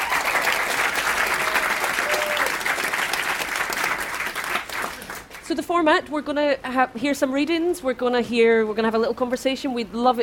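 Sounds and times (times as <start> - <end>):
audience at the Edinburgh International Book Festival applauding author Kevin Barry: 0.0 - 5.4
speech: 5.5 - 10.2.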